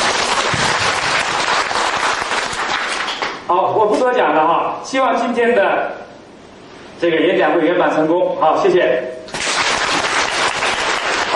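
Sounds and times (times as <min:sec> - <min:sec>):
audience applause: 0:00.0 - 0:03.4, 0:09.3 - 0:11.3
speech: 0:03.6 - 0:06.1, 0:07.0 - 0:09.2.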